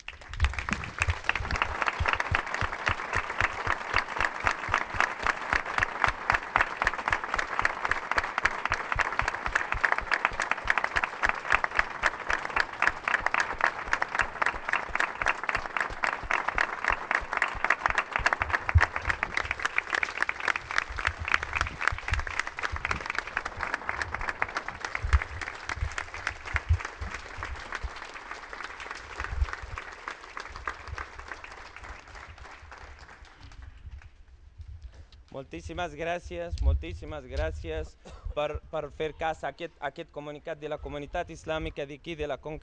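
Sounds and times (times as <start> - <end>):
audience applause: 0.0 - 34.1
speech: 35.4 - 42.6.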